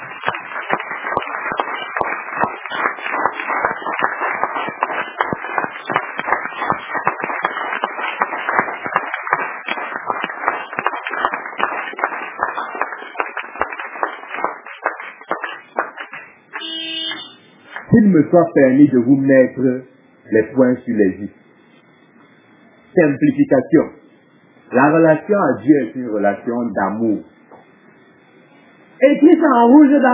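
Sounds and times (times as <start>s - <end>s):
crowd applause: 0.0s - 17.9s
speech: 18.1s - 21.4s, 23.0s - 24.0s, 24.7s - 27.3s, 29.4s - 30.1s.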